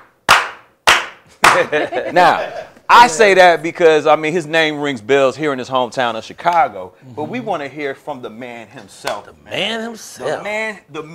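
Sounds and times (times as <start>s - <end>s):
slow clapping: 0.3s - 1.8s
speech: 1.4s - 11.1s
laughter: 1.5s - 3.2s.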